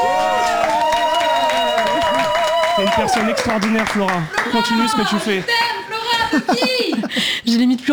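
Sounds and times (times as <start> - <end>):
whooping and cheering voices: 0.0 - 3.6
studio audience clapping: 0.0 - 6.4
speech: 2.8 - 5.5, 6.3 - 7.9
laughter: 5.5 - 7.3.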